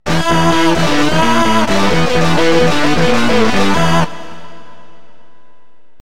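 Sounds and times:
guitar: 0:00.0 - 0:04.3.

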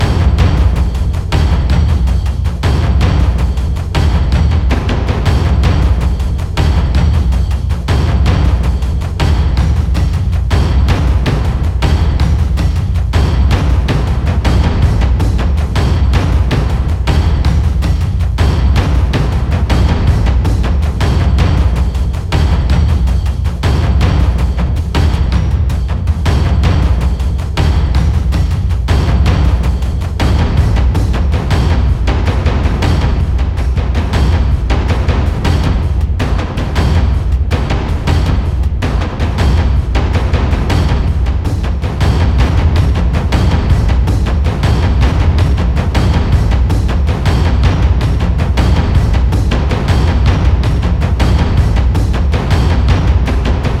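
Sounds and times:
drums: 0:00.0 - 0:53.7.

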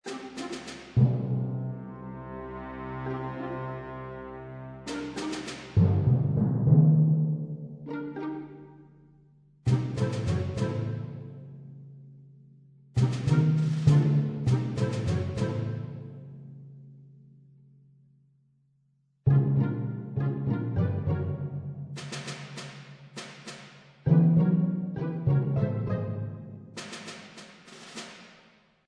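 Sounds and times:
combat planning music: 0:00.0 - 0:01.8, 0:04.8 - 0:06.8, 0:09.7 - 0:11.4, 0:13.0 - 0:16.2, 0:19.3 - 0:28.4.

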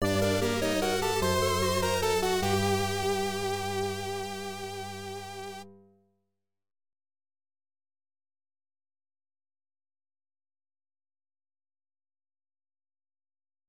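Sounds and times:
battle defeat jingle: 0:00.0 - 0:05.6.

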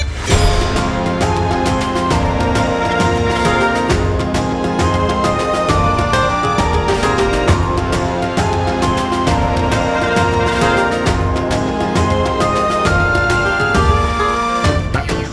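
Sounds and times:
game menu music: 0:00.2 - 0:15.0.

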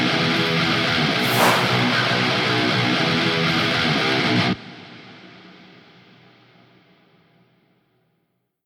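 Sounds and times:
boss fight music: 0:00.1 - 0:04.6.

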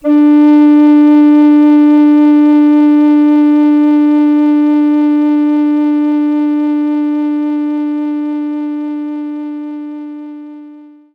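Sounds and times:
recorder note D3: 0:00.0 - 0:11.1.

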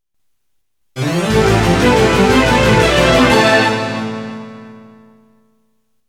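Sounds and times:
game over jingle: 0:01.0 - 0:04.9.

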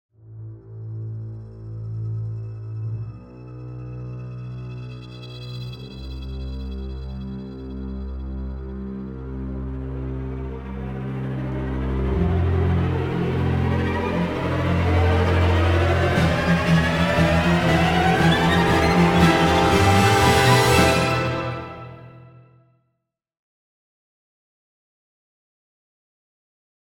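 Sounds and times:
music: 0:00.1 - 0:23.1.

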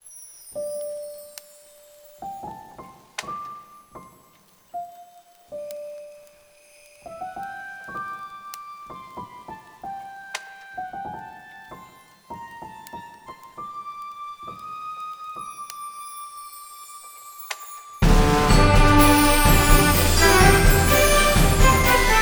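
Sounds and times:
orchestral cover: 0:18.0 - 0:22.2.

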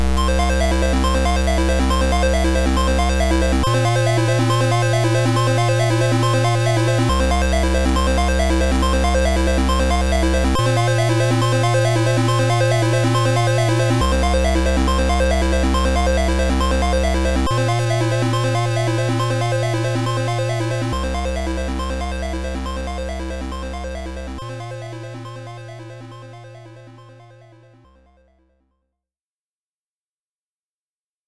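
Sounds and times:
PSG chiptune music: 0:00.2 - 0:27.9.

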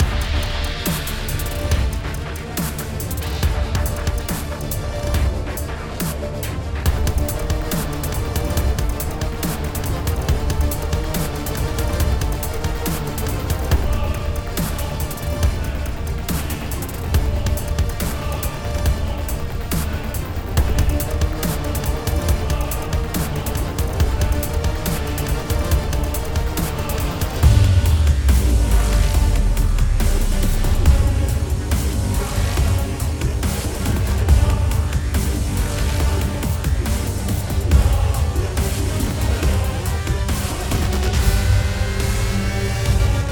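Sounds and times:
dubstep mix: 0:00.0 - 0:43.3.

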